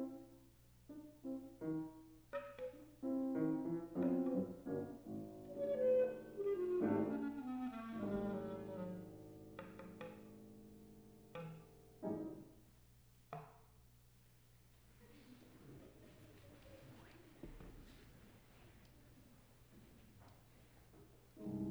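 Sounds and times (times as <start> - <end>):
piano: 0.0 - 13.6, 14.9 - 21.6
clarinet: 3.1 - 9.3.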